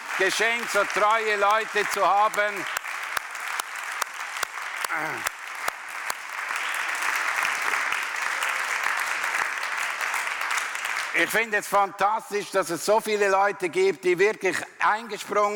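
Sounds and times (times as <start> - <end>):
audience applause in a church: 0.0 - 11.6
speech: 0.2 - 2.8, 4.9 - 5.3, 11.2 - 15.5.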